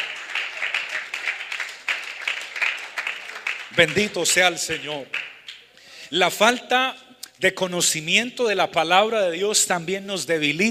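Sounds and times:
audience applause: 0.0 - 5.4
speech: 3.8 - 5.2, 6.1 - 10.6.

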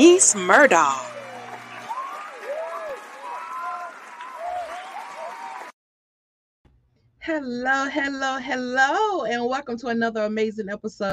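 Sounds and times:
speech: 0.0 - 1.1, 7.2 - 11.1
crowd applauding and cheering welcoming a show host: 0.0 - 5.8.

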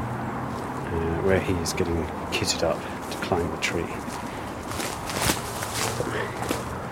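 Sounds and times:
speech: 0.9 - 4.2
footsteps walking down a steep slope: 2.4 - 6.8.

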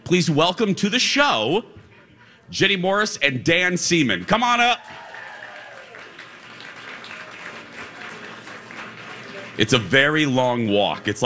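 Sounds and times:
speech: 0.1 - 1.8, 2.5 - 5.0, 9.6 - 11.2
faint murmur of voices: 1.5 - 2.6, 4.8 - 10.3
audience applause: 4.2 - 10.3.

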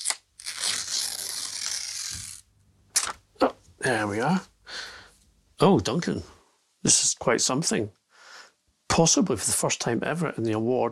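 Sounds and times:
paper tearing as a golden envelope is opened at an award presentation: 0.0 - 2.4
speech: 3.9 - 4.5, 5.6 - 8.0, 9.0 - 10.9.

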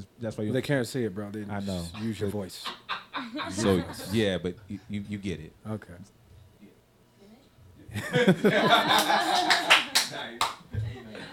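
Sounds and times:
speech: 0.2 - 6.2, 7.9 - 10.6
people laughing: 2.0 - 4.3, 7.9 - 11.3
hand clapping while laughing: 8.8 - 10.7.

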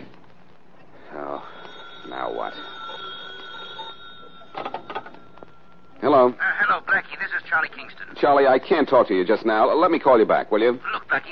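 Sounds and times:
telephone ringing with metallic bell: 1.1 - 6.4
speech: 2.3 - 2.8, 6.1 - 11.2.

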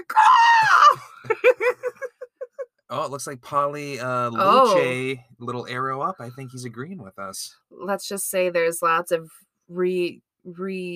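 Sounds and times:
speech: 0.0 - 0.8, 2.9 - 10.9
person imitating an eagle screech: 0.2 - 1.0, 4.4 - 5.0
breathy laughter: 1.0 - 2.6.

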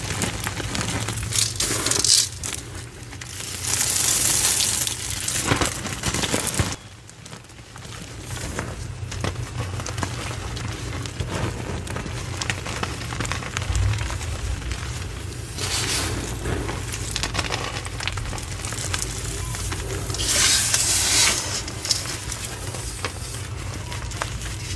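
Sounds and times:
black iron oxide gym chalk crumbling and crackling: 0.0 - 24.7
steady low hum: 13.1 - 24.4.

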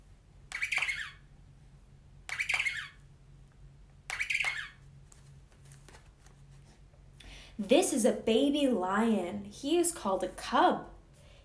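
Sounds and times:
penguin chick trilling: 0.5 - 1.3, 2.3 - 3.0, 4.1 - 4.8
speech: 7.6 - 10.9.

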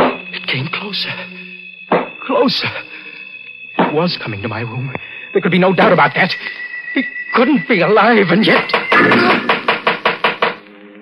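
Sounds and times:
speech: 0.5 - 1.4, 2.3 - 3.0, 3.9 - 9.3
knocking at a door: 1.9 - 2.1, 8.7 - 10.6.

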